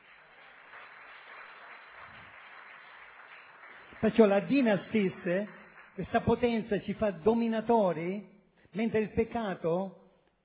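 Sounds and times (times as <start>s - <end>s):
audience applause: 0.0s - 6.1s
speech: 4.0s - 10.0s.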